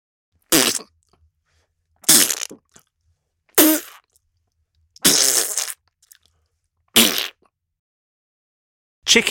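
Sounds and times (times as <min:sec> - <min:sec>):
splat sound variations: 0:00.5 - 0:00.9, 0:02.0 - 0:02.6, 0:05.0 - 0:05.8.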